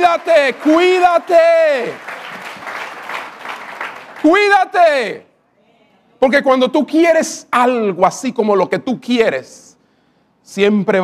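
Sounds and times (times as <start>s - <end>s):
audience applause: 0.0s - 4.7s
speech: 0.1s - 2.1s, 4.2s - 5.3s, 6.2s - 9.7s, 10.4s - 11.0s.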